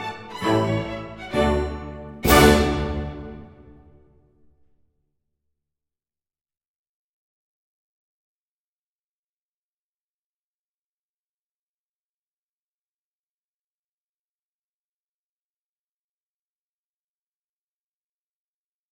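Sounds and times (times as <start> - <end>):
ballet music for a male dance variation: 0.0 - 4.1.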